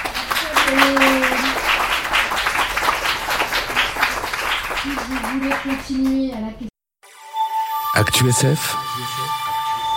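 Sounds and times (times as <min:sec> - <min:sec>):
audience applause: 0:00.0 - 0:06.2
speech: 0:05.6 - 0:06.7, 0:08.0 - 0:09.2
tonal whistle or hum: 0:07.2 - 0:09.9.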